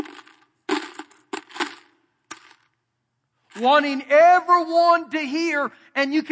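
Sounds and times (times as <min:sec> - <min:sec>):
metal coins dropped noisily into offering box: 0:00.0 - 0:02.7
speech: 0:03.6 - 0:06.3.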